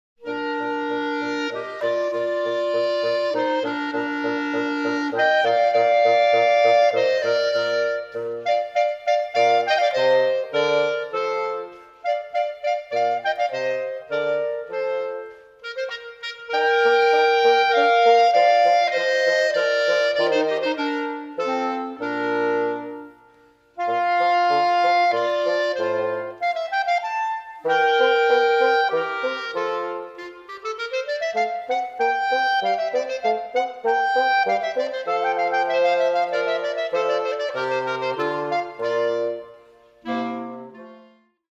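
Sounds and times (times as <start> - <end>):
andante music: 0.2 - 41.5.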